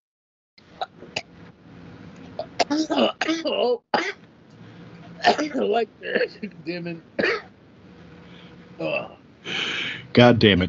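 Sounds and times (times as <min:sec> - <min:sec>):
man coughing after a weed hit: 0:02.5 - 0:04.2, 0:05.2 - 0:06.4, 0:07.2 - 0:07.5
speech: 0:02.7 - 0:04.2, 0:05.2 - 0:07.5, 0:08.8 - 0:10.6.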